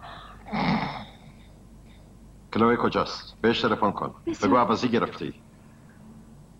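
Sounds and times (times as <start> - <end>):
person breathing: 0.0 - 0.5
speech: 2.5 - 5.4.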